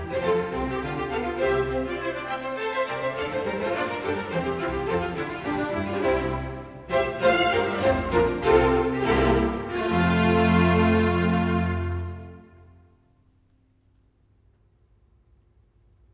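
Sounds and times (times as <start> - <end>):
concerto grosso in F major: 0.0 - 12.8.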